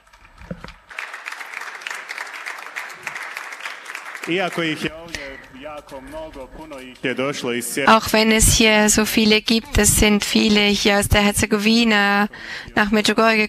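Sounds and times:
audience applause: 0.7 - 7.0
speech: 4.2 - 13.4.

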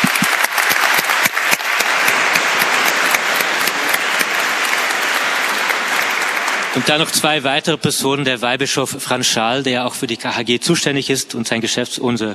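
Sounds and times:
crowd applauding: 0.0 - 7.8
speech: 6.8 - 12.3.

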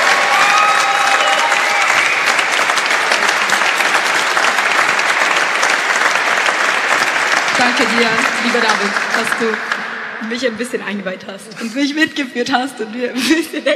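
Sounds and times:
whistles and cheers: 0.0 - 4.0
crowd applause: 0.0 - 10.3
speech: 7.8 - 13.7.

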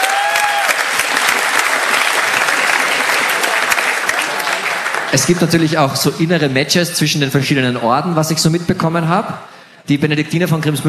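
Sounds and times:
crowd clapping: 0.0 - 5.8
speech: 5.1 - 10.8.

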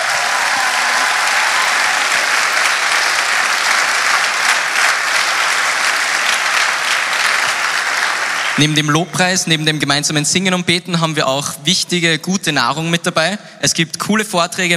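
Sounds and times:
audience applause: 0.0 - 8.8
speech: 8.6 - 14.7.

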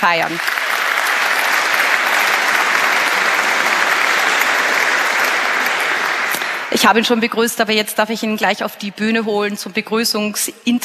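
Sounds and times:
speech: 0.0 - 0.7, 6.7 - 10.8
large crowd clapping: 0.0 - 7.5.

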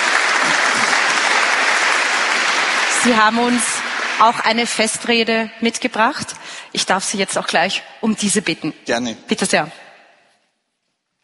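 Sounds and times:
applause at a festive ceremony: 0.0 - 5.4
speech: 3.0 - 9.8.

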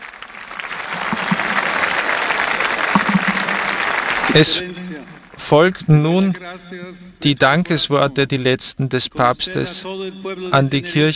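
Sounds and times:
jubilant crowd cheering and applauding: 0.0 - 5.3
speech: 4.4 - 4.8, 5.5 - 11.1.

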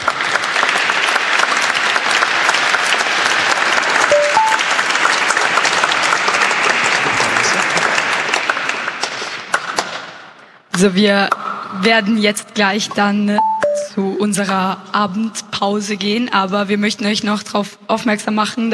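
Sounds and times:
audience applause: 0.0 - 10.0
speech: 10.8 - 18.7.

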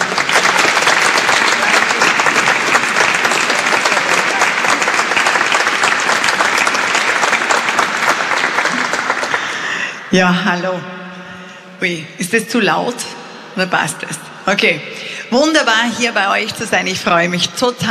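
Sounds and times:
crowd applause: 0.0 - 10.1
speech: 10.1 - 11.0, 11.8 - 17.8.

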